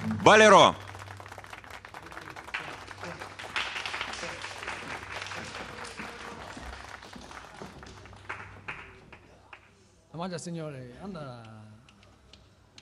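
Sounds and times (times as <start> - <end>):
audience applause: 0.0 - 9.6
speech: 0.2 - 0.8, 10.2 - 11.6.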